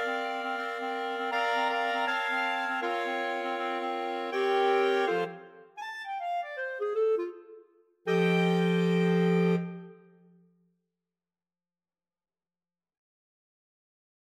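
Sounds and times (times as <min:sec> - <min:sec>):
clarinet choir playing jazzy tune: 0:00.0 - 0:05.4, 0:06.0 - 0:07.4, 0:08.1 - 0:09.9.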